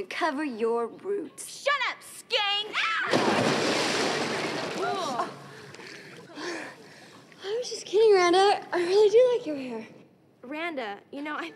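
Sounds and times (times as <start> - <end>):
speech: 0.0 - 4.0, 7.4 - 11.5
splash of a person pushed into a swimming pool: 3.1 - 5.3.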